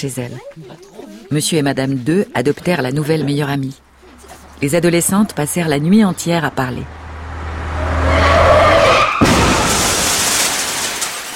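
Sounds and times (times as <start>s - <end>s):
speech: 0.0s - 3.8s, 4.6s - 7.0s
car tires screeching and skidding: 3.8s - 10.9s
debris and wreckage settling: 6.8s - 11.3s
car crash crunching impact: 7.1s - 11.3s.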